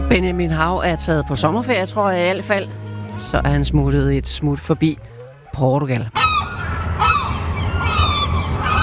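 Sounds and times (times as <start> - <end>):
speech: 0.1 - 6.2
seagulls screeching: 6.1 - 8.8.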